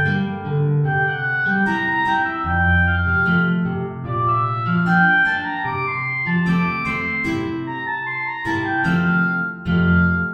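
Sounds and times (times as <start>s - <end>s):
guitar: 0.0s - 10.3s
oboe: 0.0s - 10.3s.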